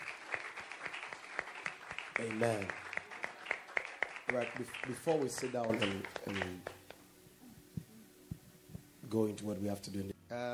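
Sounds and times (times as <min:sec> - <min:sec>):
audience clapping: 0:00.0 - 0:07.1
speech: 0:02.2 - 0:02.8, 0:04.3 - 0:06.8, 0:09.1 - 0:10.5.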